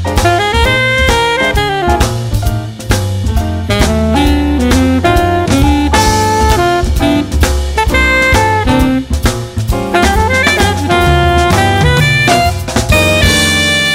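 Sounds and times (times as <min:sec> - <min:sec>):
jazz blues with alto saxophone soloist: 0:00.0 - 0:13.9.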